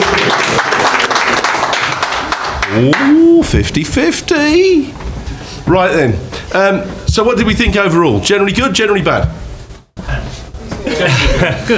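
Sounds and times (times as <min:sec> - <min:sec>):
audience clapping in a straw poll: 0:00.0 - 0:03.4
speech: 0:02.8 - 0:05.0, 0:05.7 - 0:09.4, 0:10.9 - 0:11.7
laughter: 0:10.7 - 0:11.7.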